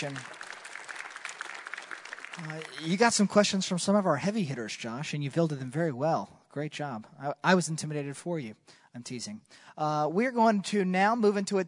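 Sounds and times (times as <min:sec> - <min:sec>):
speech: 0:00.0 - 0:00.4, 0:02.4 - 0:11.6
round of applause: 0:00.0 - 0:04.7.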